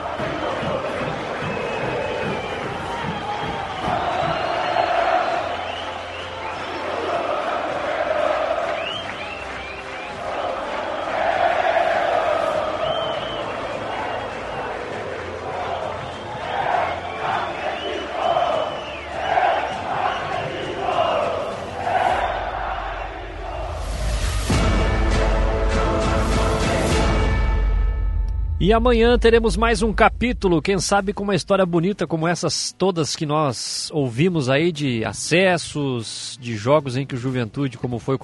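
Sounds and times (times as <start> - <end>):
stadium crowd shouting and cheering for team: 0.0 - 27.6
speech: 28.7 - 38.2.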